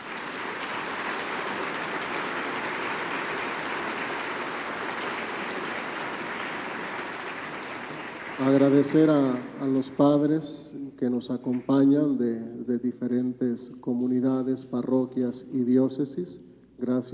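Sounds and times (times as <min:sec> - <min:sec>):
audience applause: 0:00.0 - 0:10.2
speech: 0:08.4 - 0:17.1.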